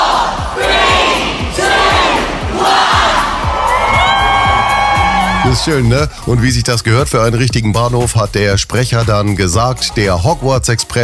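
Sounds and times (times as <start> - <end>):
crowd of fans counting down: 0.0 - 6.3
speech: 5.4 - 11.0.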